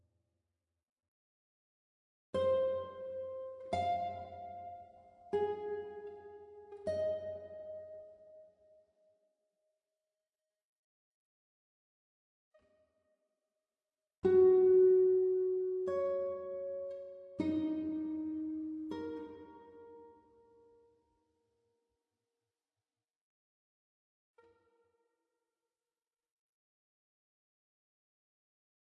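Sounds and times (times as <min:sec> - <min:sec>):
guitar: 0:02.3 - 0:08.8, 0:14.2 - 0:21.0.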